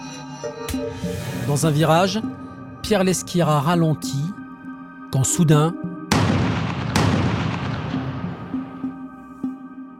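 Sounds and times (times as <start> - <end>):
speech: 0.4 - 4.4, 5.1 - 5.9
shotgun blasts of buckshot fired at a shepherd: 6.1 - 8.4.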